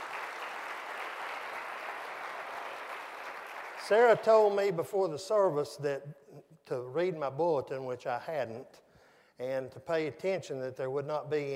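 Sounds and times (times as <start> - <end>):
audience applause: 0.0 - 4.2
speech: 3.8 - 8.8, 9.4 - 11.5.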